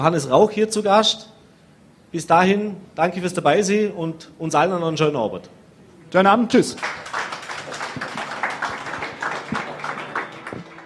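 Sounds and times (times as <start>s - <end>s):
speech: 0.0s - 1.3s, 2.1s - 7.3s
audience applause: 6.8s - 10.8s.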